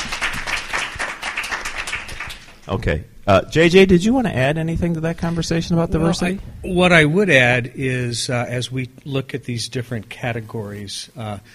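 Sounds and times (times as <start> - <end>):
audience applause: 0.0 - 2.6
speech: 2.7 - 11.5.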